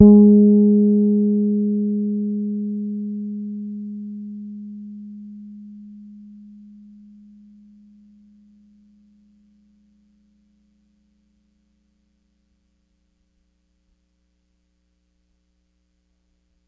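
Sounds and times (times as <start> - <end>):
Pedulla Thunderbass bass guitar playing G sharp four hard: 0.0 - 6.5.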